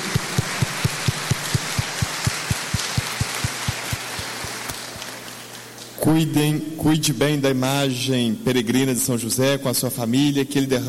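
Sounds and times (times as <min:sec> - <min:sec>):
crowd applauding: 0:00.0 - 0:06.0
speech: 0:06.1 - 0:10.8.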